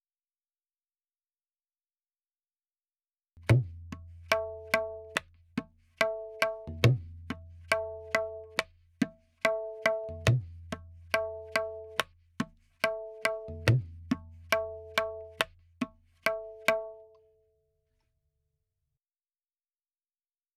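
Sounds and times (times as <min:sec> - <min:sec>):
tabla in 4/4 at 70: 0:03.4 - 0:17.2.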